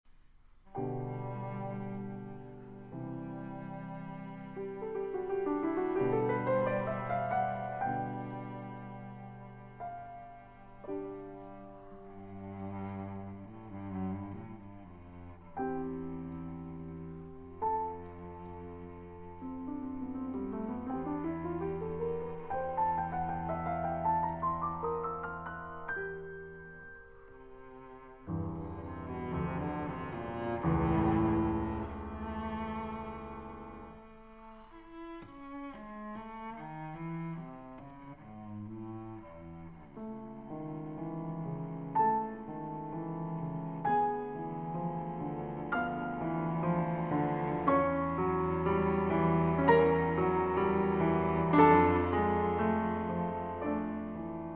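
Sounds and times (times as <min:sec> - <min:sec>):
cello sonata in C major: 0:00.0 - 0:54.5.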